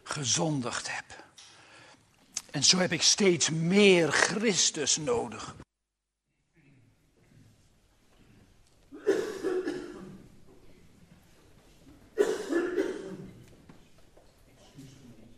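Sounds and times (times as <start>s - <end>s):
speech: 0.2s - 1.1s, 2.5s - 5.6s
person coughing after inhaling something during a church service: 8.9s - 10.3s, 12.2s - 13.5s.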